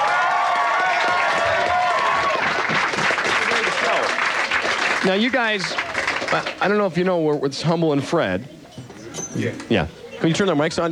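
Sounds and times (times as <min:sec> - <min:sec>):
audience applause welcoming two performers: 0:00.0 - 0:06.8
crowd noise: 0:00.0 - 0:10.9
speech: 0:05.0 - 0:08.6, 0:09.4 - 0:10.9.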